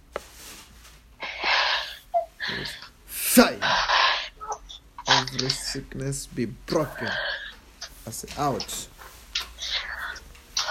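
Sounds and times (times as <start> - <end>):
heavy breathing through the mouth during a prayer healing session in Swaziland: 1.2 - 5.6, 6.8 - 7.6, 9.5 - 10.7
speech: 5.4 - 7.3, 8.0 - 8.9.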